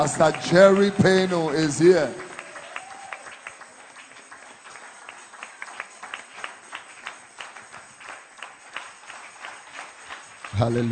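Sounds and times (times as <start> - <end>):
speech: 0.0 - 2.3, 10.6 - 10.9
audience clapping: 0.0 - 10.9.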